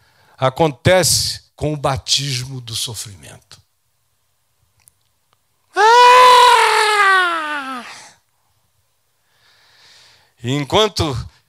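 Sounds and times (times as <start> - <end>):
speech: 0.4 - 3.6, 10.4 - 11.4
newborn baby crying: 5.8 - 8.0.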